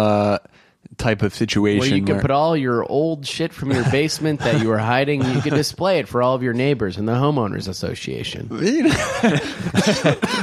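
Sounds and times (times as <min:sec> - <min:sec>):
speech: 0:00.0 - 0:10.4
laughter: 0:03.7 - 0:05.8, 0:08.7 - 0:10.4
person coughing: 0:05.2 - 0:05.6, 0:09.2 - 0:10.4.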